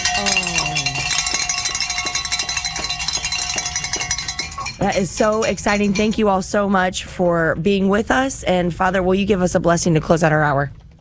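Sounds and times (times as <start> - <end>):
bells ringing in celebration: 0.0 - 6.4
speech: 4.8 - 10.8.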